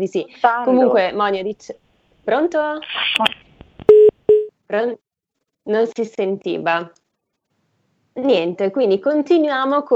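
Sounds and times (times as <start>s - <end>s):
speech: 0.0s - 3.4s, 4.7s - 5.0s, 5.6s - 7.0s, 8.2s - 9.9s
telephone line tones after dropped call: 3.9s - 4.5s.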